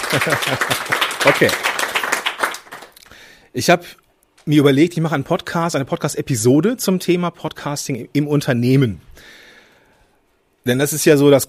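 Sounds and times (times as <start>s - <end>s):
laughter: 0.0s - 1.6s
audience clapping: 0.0s - 3.1s
speech: 0.1s - 1.7s, 3.6s - 9.4s, 10.6s - 11.4s.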